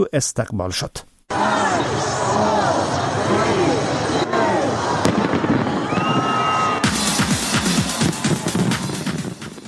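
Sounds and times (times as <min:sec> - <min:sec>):
speech: 0:00.0 - 0:02.6
noisy crowd chatter and cheering: 0:01.3 - 0:09.4
fireworks crackling and booming at New Year celebration: 0:05.0 - 0:09.6.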